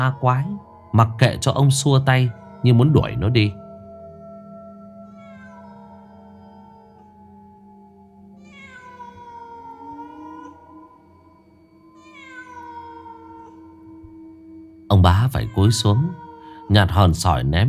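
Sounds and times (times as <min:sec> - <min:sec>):
speech: 0:00.0 - 0:03.6, 0:15.0 - 0:17.6
black cat meowing mournfully: 0:05.1 - 0:06.1, 0:08.4 - 0:11.0, 0:12.0 - 0:14.1, 0:15.2 - 0:17.5.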